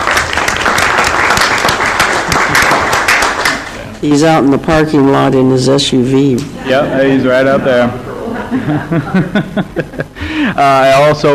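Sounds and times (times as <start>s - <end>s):
round of applause from a group: 0.0s - 3.9s
laughter: 2.2s - 2.8s, 7.5s - 10.6s
speech: 4.0s - 11.3s.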